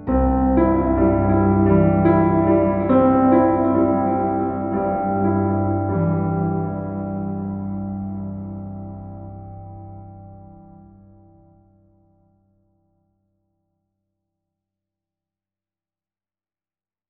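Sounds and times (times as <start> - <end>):
ambient music melody: 0.0 - 12.2.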